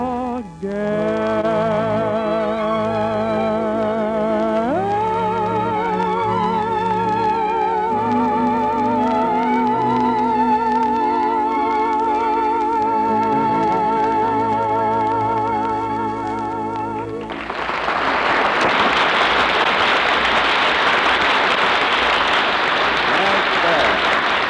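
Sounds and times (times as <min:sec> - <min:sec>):
song music: 0:00.0 - 0:20.6
studio audience applause: 0:17.1 - 0:24.4.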